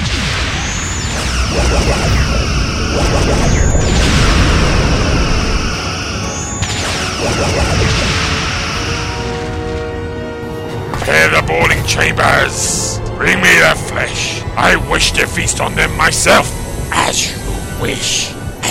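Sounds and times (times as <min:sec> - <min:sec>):
starship phaser energy blasts during a space battle: 0:00.0 - 0:09.9
constant rumbling roar during a space battle: 0:00.0 - 0:18.6
speech: 0:11.9 - 0:18.6.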